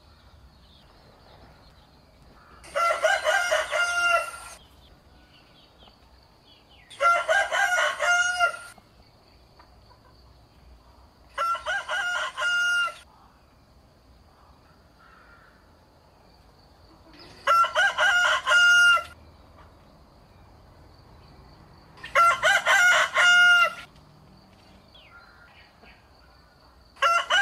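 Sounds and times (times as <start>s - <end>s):
rooster crowing: 2.6s - 4.6s, 6.9s - 8.8s, 11.4s - 13.1s, 17.4s - 19.2s, 22.0s - 23.9s, 27.0s - 27.4s.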